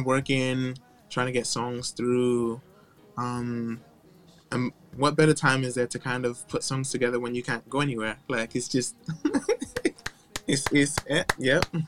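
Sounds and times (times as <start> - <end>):
speech: 0.0 - 3.9, 4.5 - 9.9, 10.5 - 11.8
laughter: 9.1 - 10.6
sharp hand claps: 9.6 - 11.8.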